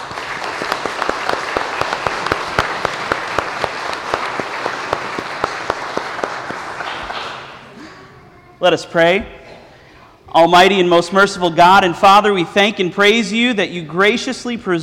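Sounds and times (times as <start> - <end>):
audience applause: 0.0 - 7.7
speech: 8.6 - 9.4, 10.3 - 14.8.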